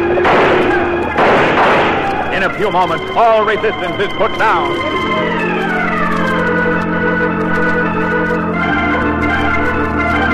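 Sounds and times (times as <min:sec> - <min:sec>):
gunfire barrage from blazing guns: 0:00.0 - 0:10.2
speech: 0:02.6 - 0:05.5.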